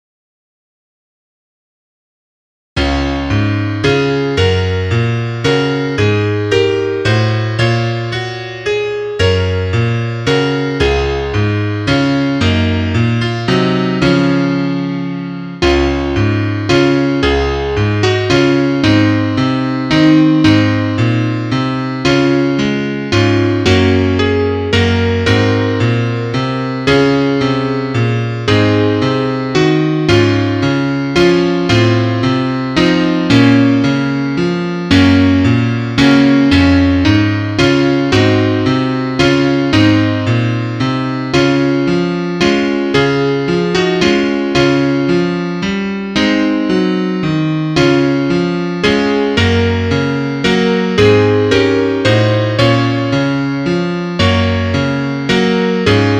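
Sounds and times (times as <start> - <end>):
piano: 2.8 - 56.1.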